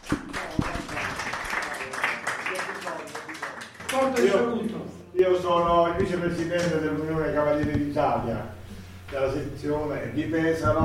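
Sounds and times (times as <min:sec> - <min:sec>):
audience applause: 0:00.0 - 0:04.4
speech: 0:04.2 - 0:08.5, 0:09.1 - 0:10.8.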